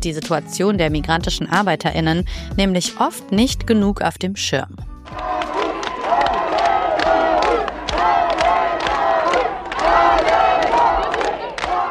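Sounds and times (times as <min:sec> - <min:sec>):
speech: 0:00.0 - 0:05.3
striking workers chanting and yelling at Pierburg in Neuss, 1973 archive recording: 0:05.0 - 0:11.9.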